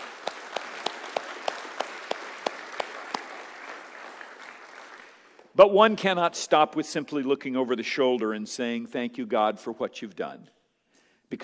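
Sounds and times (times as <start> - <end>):
audience applause: 0.0 - 5.5
speech: 5.6 - 10.6.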